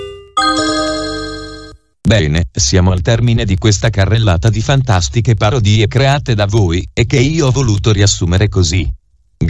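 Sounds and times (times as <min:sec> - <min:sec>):
WhatsApp new message notification chime: 0:00.4 - 0:01.8
speech: 0:02.1 - 0:09.4.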